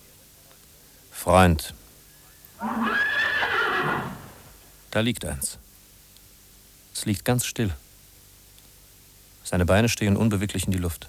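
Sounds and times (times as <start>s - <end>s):
speech: 1.2s - 1.8s, 2.6s - 3.0s, 5.0s - 5.6s, 7.0s - 7.8s, 9.4s - 11.0s
horse whinnying: 2.6s - 4.6s.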